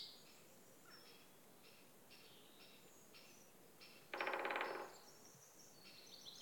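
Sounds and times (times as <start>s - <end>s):
woodpecker drumming with rapid wooden knocks: 3.9s - 5.1s.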